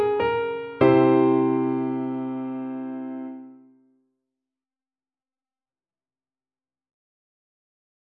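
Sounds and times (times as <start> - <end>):
piano: 0.0 - 3.7.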